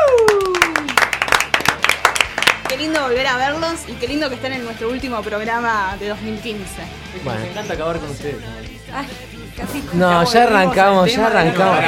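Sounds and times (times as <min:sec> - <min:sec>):
audience applause greeting a band on stage: 0:00.0 - 0:03.0
speech: 0:02.8 - 0:11.8.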